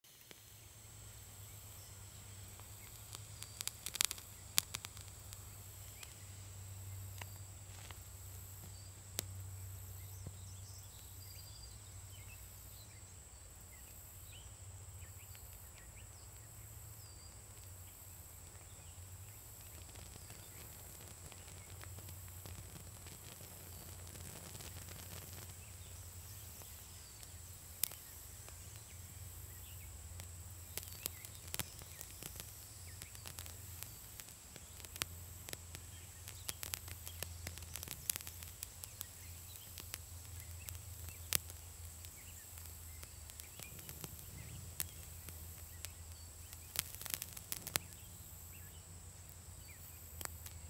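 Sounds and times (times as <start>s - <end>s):
flickering light: 0.1s - 50.6s.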